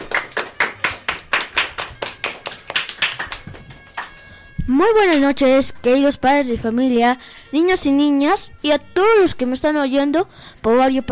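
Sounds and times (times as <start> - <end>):
applause: 0.0 - 4.4
speech: 4.7 - 11.1.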